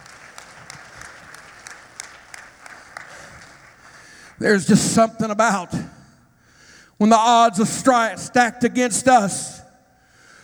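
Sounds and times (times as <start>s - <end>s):
crowd clapping hands: 0.0s - 4.4s
speech: 4.4s - 5.9s, 7.0s - 9.6s.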